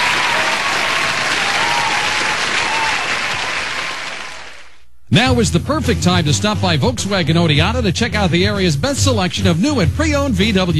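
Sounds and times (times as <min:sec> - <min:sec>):
crowd applause: 0:00.0 - 0:04.8
speech: 0:05.1 - 0:10.7.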